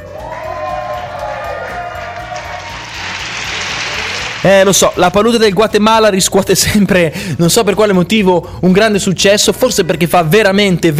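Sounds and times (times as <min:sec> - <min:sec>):
crowd applause: 0:00.0 - 0:04.9
speech: 0:04.4 - 0:10.9.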